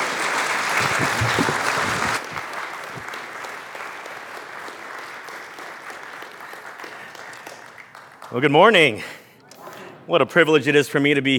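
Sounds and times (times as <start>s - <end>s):
church audience applause welcoming a guest speaker from Manila: 0.0s - 8.5s
speech: 8.3s - 9.2s, 10.1s - 11.3s.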